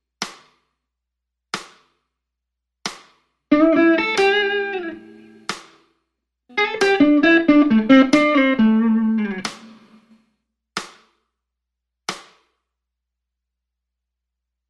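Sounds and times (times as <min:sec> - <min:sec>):
guitar: 0:03.5 - 0:05.7, 0:06.5 - 0:10.2
metronome counting two offbeat: 0:03.5 - 0:05.7, 0:06.5 - 0:10.1.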